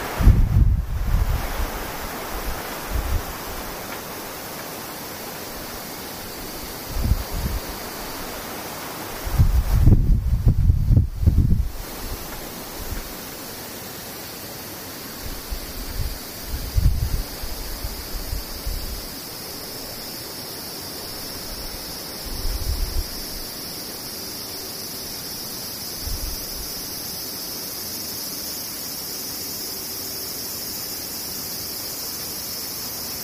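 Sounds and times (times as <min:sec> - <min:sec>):
wind gusts rumbling across the microphone: 0:00.0 - 0:04.5, 0:05.4 - 0:13.2, 0:15.2 - 0:19.2, 0:21.2 - 0:23.5, 0:26.0 - 0:26.8
cicadas buzzing: 0:00.0 - 0:33.2.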